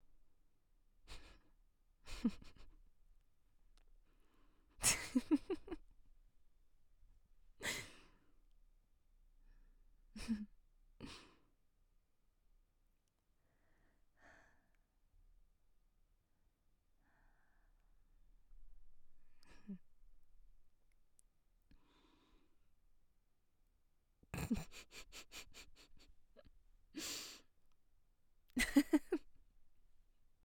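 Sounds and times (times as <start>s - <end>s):
woman laughing softly: 2.1s - 2.8s, 4.8s - 5.9s, 10.2s - 10.5s, 19.4s - 19.9s, 24.3s - 27.4s, 28.5s - 29.4s.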